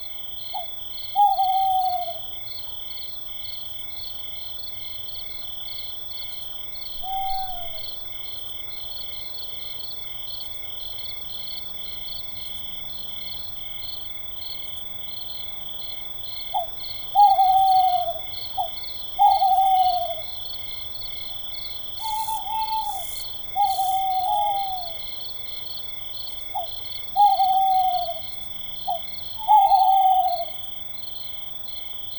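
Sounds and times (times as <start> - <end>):
owl in a forest: 0.6 - 2.2, 7.0 - 7.8, 16.5 - 20.4, 22.0 - 25.1, 26.5 - 30.6.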